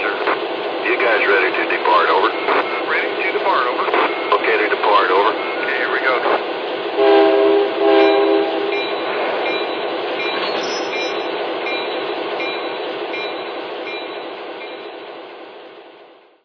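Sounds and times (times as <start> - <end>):
trains: 0.0 - 16.4.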